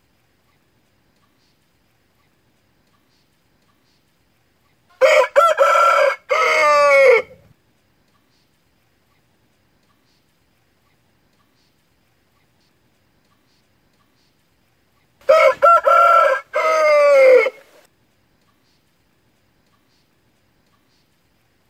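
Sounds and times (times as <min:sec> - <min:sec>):
fighting rooster crowing: 0:05.0 - 0:07.5, 0:15.2 - 0:17.9.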